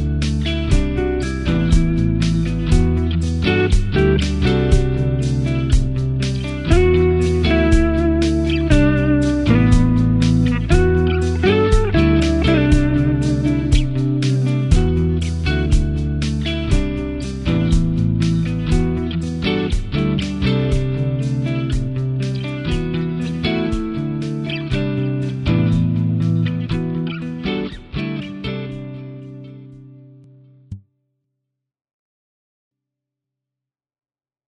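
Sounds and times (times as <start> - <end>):
guitar: 0.0 - 30.8.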